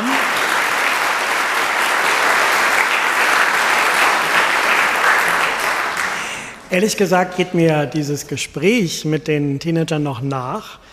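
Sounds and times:
audience applause: 0:00.0 - 0:06.6
speech: 0:06.7 - 0:10.9.

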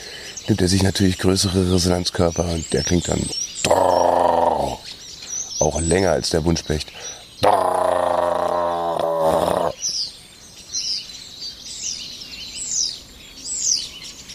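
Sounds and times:
starling singing overhead: 0:00.4 - 0:10.0
speech: 0:00.5 - 0:04.1, 0:05.6 - 0:07.2.

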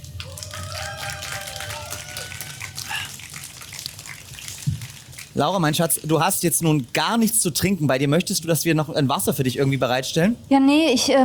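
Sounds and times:
audience applause: 0:00.0 - 0:06.8
speech: 0:05.4 - 0:11.2.

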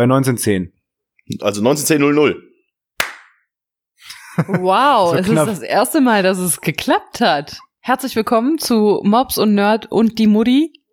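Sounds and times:
speech: 0:00.0 - 0:02.5, 0:04.4 - 0:10.8
hand clap for recording sync: 0:03.0 - 0:03.4.

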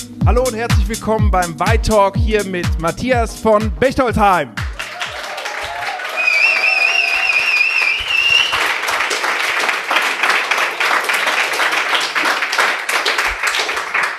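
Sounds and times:
speech: 0:00.3 - 0:04.6
audience clapping in a full Vi pop-up store in Berlin Mitte: 0:04.6 - 0:14.1
whistles: 0:06.1 - 0:08.8.

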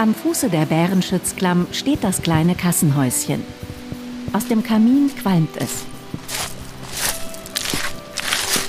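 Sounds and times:
speech: 0:00.0 - 0:06.5
rushing water: 0:00.4 - 0:08.6
hiking boots crunching on gravel path: 0:05.1 - 0:08.6.

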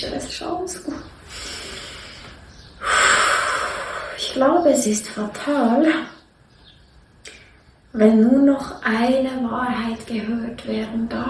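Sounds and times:
speech: 0:00.0 - 0:01.5, 0:04.4 - 0:06.2, 0:07.9 - 0:11.2
breathy exhale: 0:01.2 - 0:04.4
person gasping for air: 0:01.3 - 0:04.2.

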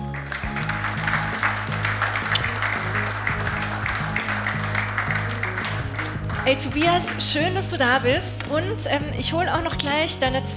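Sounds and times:
audience applause: 0:00.0 - 0:07.6
speech: 0:06.5 - 0:10.5.

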